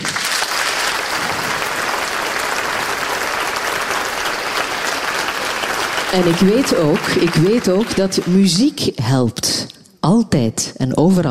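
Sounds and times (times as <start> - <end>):
theatre audience applause: 0.0 - 8.8
speech: 6.1 - 11.2.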